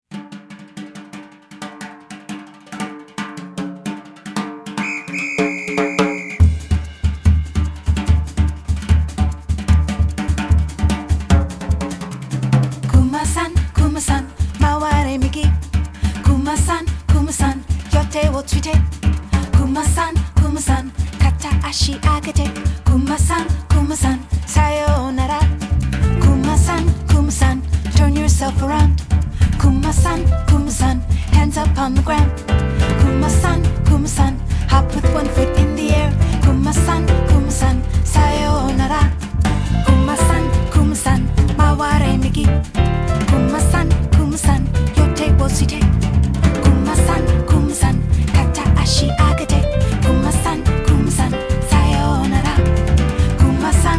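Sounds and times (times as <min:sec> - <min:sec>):
samba music: 0:00.0 - 0:53.9.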